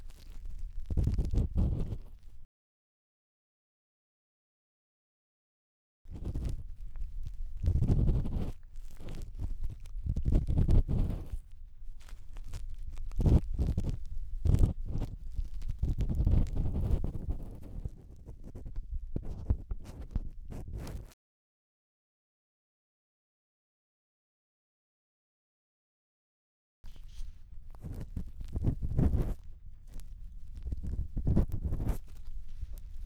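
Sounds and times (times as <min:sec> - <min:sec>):
bamboo ear pick scraping deep inside right ear: 0:00.0 - 0:02.4, 0:06.1 - 0:18.0, 0:26.9 - 0:33.0.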